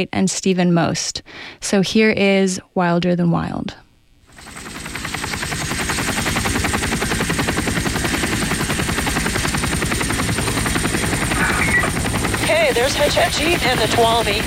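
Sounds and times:
speech: 0.0 - 3.8, 12.8 - 14.4
helicopter rotor thumping: 4.3 - 14.4.

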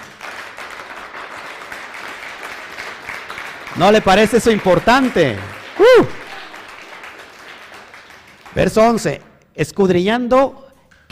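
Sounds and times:
audience applause: 0.0 - 9.2
speech: 3.8 - 6.2, 8.6 - 10.6.

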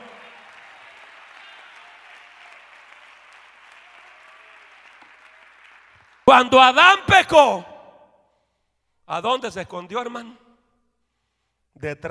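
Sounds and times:
audience applause: 0.0 - 6.4
speech: 6.3 - 7.7, 9.1 - 10.4, 11.8 - 12.1.

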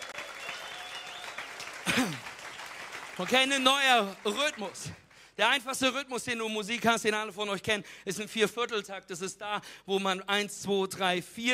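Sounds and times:
short audience applause: 0.0 - 5.1
speech: 3.2 - 11.5.

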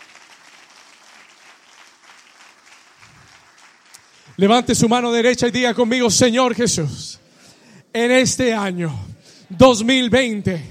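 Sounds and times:
loud audience applause: 0.0 - 4.4
speech: 4.4 - 7.2, 7.9 - 10.6.

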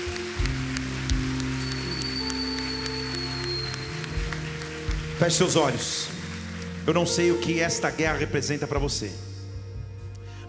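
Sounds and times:
audience applauding: 0.0 - 7.8
speech: 5.2 - 6.2, 6.9 - 9.3.

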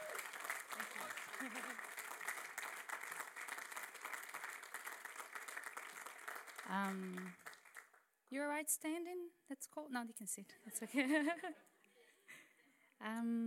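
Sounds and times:
audience applause: 0.0 - 8.0
laughter: 0.8 - 1.9, 10.8 - 11.8
speech: 1.4 - 1.9, 6.7 - 7.4, 8.3 - 11.7, 13.0 - 13.4.

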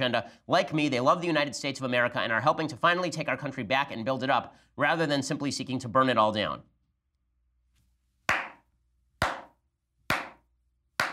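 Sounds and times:
speech: 0.0 - 6.7
slow clap: 8.3 - 8.6, 9.2 - 10.4, 11.0 - 11.1.

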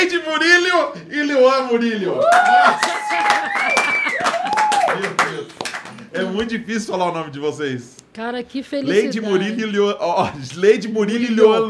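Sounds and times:
speech: 0.3 - 5.1, 6.4 - 11.6
crowd clapping and cheering with whoops: 2.2 - 6.1.

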